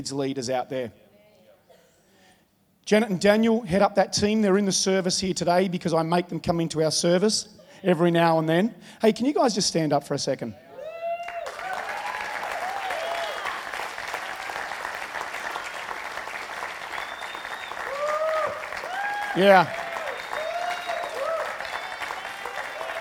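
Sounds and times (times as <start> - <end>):
speech: 0.0 - 1.0, 2.9 - 10.6, 19.4 - 19.8
voices cheering: 10.7 - 13.8, 16.7 - 22.9
audience applause: 11.2 - 22.9.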